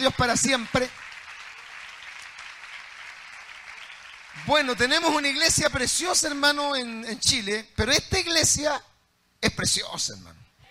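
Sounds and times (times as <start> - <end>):
speech: 0.0 - 1.1, 4.4 - 10.4
church congregation clapping in praise: 0.0 - 6.4.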